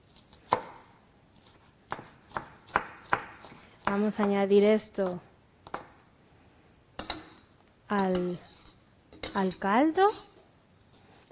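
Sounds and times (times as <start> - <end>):
knife chopping food into small squares on a board: 0.5 - 0.9, 1.9 - 4.4
speech: 3.9 - 5.3, 7.9 - 8.5, 9.3 - 10.3.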